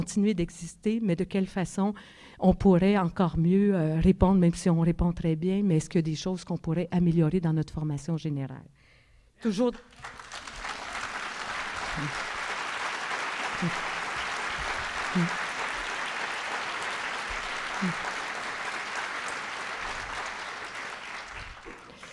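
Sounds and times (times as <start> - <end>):
speech: 0.0 - 8.8, 9.4 - 10.3, 12.0 - 12.3, 13.6 - 13.9, 15.1 - 15.4, 17.8 - 18.1
audience applause: 9.9 - 22.1.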